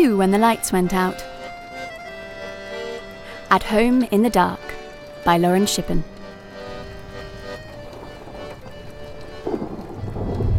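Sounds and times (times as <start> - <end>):
speech: 0.0 - 1.3, 3.5 - 6.1
heavy rain downpour in a thunderstorm: 6.4 - 10.5
low thunder rumble: 6.8 - 10.5.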